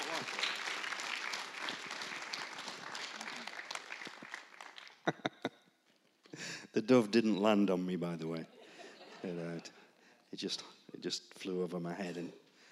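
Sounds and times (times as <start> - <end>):
voices among clapping: 0.0 - 5.0
church congregation applauding to welcome a pastor: 0.0 - 5.2
speech: 6.4 - 8.6, 9.2 - 12.4.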